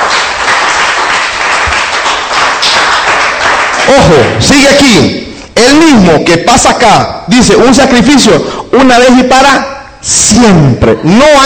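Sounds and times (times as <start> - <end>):
audience clapping hands: 0.0 - 5.0
speech: 3.9 - 11.4.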